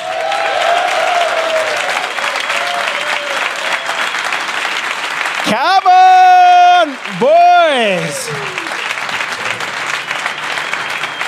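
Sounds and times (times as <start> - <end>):
whoops and cheers: 0.0 - 4.4, 5.7 - 9.0
crowd applauding to welcome guests: 0.0 - 11.2
speech: 5.5 - 6.1, 7.1 - 8.5.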